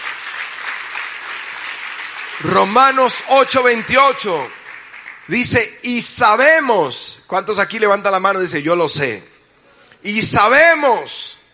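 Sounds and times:
audience applause: 0.0s - 5.5s
speech: 2.4s - 4.6s, 5.3s - 9.3s, 10.0s - 11.4s.

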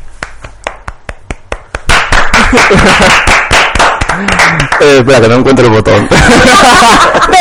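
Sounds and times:
applause: 0.2s - 5.1s
laughter: 2.4s - 3.3s, 5.9s - 7.3s
speech: 2.5s - 3.4s, 4.8s - 7.3s.

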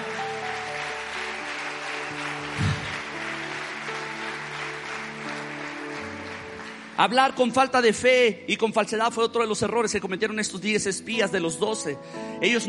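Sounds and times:
crowd applause: 0.0s - 7.6s
speech: 7.0s - 12.6s.

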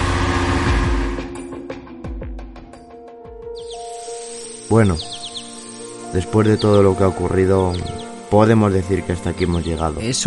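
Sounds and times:
car engine accelerating away: 0.0s - 1.5s
hiss: 3.7s - 4.8s
speech: 4.7s - 5.2s, 6.1s - 10.2s.

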